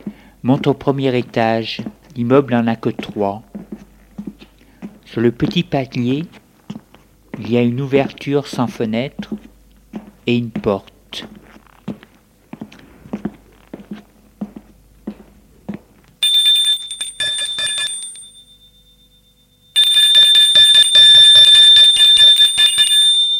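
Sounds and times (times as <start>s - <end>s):
speech: 0.4s - 3.5s, 5.1s - 6.4s, 7.4s - 9.5s, 10.3s - 11.4s
doorbell ringing: 16.2s - 23.3s.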